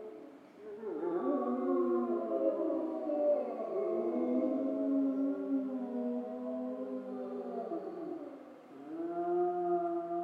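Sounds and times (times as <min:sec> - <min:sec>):
grey wolves howling in chorus in Schorfheide: 0:00.0 - 0:10.2.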